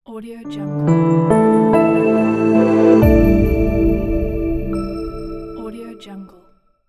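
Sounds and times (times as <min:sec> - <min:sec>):
branding logo jingle: 0:00.7 - 0:06.1.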